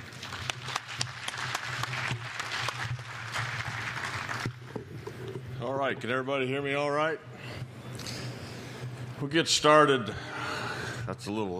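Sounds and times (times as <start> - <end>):
audience applause welcoming two speakers at a coal mining technical session: 0.0 - 5.4
speech: 5.8 - 7.4, 9.2 - 10.3, 11.1 - 11.5.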